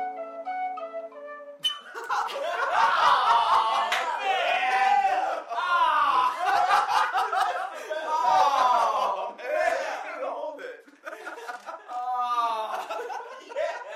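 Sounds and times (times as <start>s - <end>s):
tin whistle: 0.0s - 2.2s
laughter: 1.8s - 13.9s.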